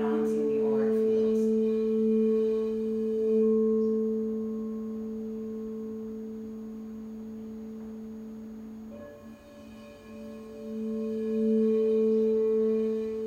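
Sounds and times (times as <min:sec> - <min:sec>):
singing bowl ringing for a sound bath: 0:00.0 - 0:13.2.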